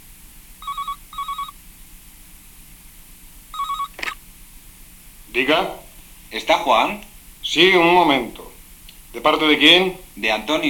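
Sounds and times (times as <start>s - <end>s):
telephone ringing: 0.6s - 1.6s, 3.5s - 4.2s
speech: 5.4s - 8.4s, 9.1s - 10.6s.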